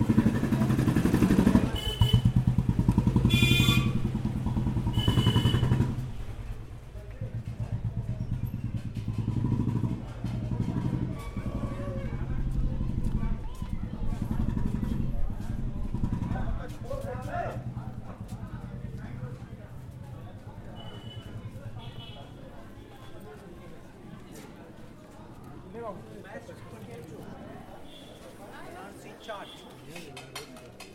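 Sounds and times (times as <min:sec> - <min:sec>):
people talking: 0:00.0 - 0:02.2, 0:09.6 - 0:30.9
motorcycle engines revving and passing in Varanasi: 0:00.0 - 0:22.6
vehicle horns: 0:01.6 - 0:02.5, 0:03.2 - 0:04.2, 0:04.8 - 0:06.1, 0:20.7 - 0:23.2, 0:27.8 - 0:28.3, 0:29.2 - 0:29.8.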